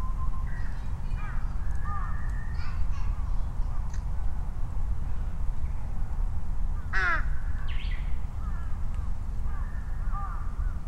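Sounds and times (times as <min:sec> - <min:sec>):
steady low rumble: 0:00.0 - 0:10.8
fainter answering crows cawing: 0:01.1 - 0:02.8, 0:06.8 - 0:10.8
crow cawing: 0:06.9 - 0:07.4, 0:09.5 - 0:10.8.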